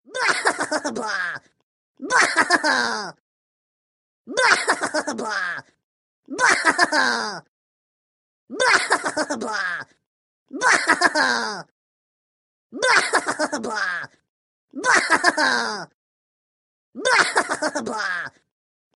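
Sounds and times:
Rabbids laughing: 0.1s - 3.2s, 4.3s - 7.4s, 8.5s - 11.7s, 12.8s - 14.2s, 14.8s - 15.9s, 17.0s - 18.4s.

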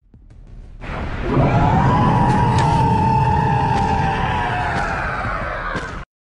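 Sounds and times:
titan roar: 1.2s - 6.0s.

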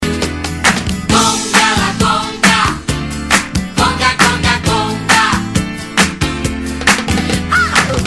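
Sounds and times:
conga drums: 0.0s - 8.0s.

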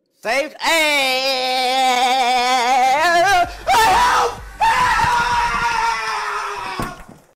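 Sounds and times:
person screaming: 1.2s - 7.1s.

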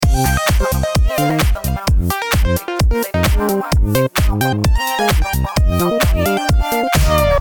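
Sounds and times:
dance music intro loop: 0.0s - 7.3s.

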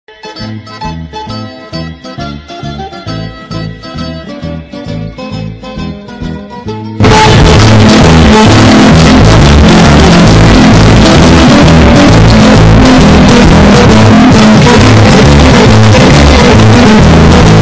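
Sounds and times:
Neapolitan tarantella music: 0.1s - 17.6s.

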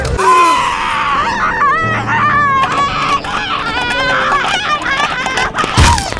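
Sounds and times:
scream: 0.0s - 4.2s
laughter: 1.0s - 6.1s.

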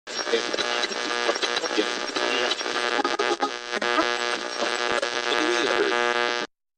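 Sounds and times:
radio: 0.1s - 6.5s.

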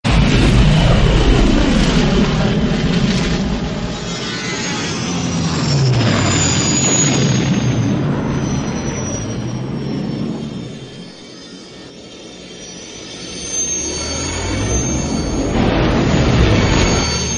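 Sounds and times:
Millennium Falcon spaceship sound effect: 0.0s - 17.3s.

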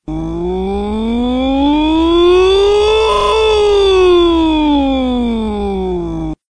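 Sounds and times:
person voicing ooh: 0.0s - 6.4s.

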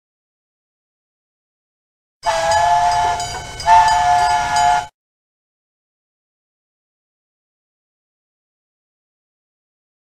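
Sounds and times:
train whistle: 2.2s - 5.0s.

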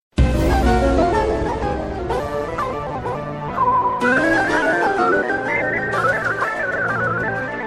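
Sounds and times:
distorted music: 0.2s - 7.6s.

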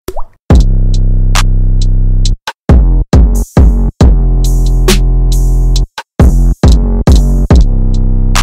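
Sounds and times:
instrumental beat: 0.5s - 8.4s.

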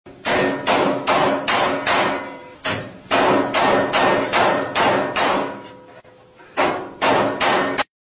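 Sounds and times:
hitting impacts: 0.1s - 7.9s.

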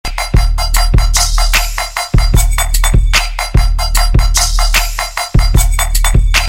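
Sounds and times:
music beat: 0.0s - 6.4s.

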